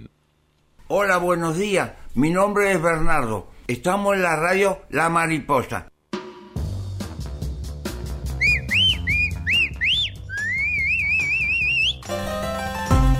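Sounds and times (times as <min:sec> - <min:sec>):
speech: 0:00.9 - 0:05.9
rhythmic music with thumping beat: 0:06.1 - 0:13.1
ice cream vendor's whistle: 0:08.3 - 0:12.1.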